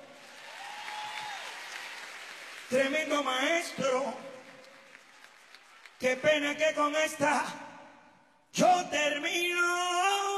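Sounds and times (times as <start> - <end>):
audience applause at a live concert with an orchestra: 0.0 - 6.2
speech: 2.7 - 4.3, 6.0 - 7.6, 8.6 - 10.2.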